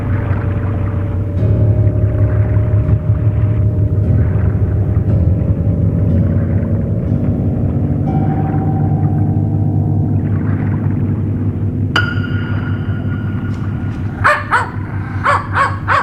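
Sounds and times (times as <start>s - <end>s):
deep rumbling drone: 0.0s - 16.0s
dog barking: 14.2s - 16.0s.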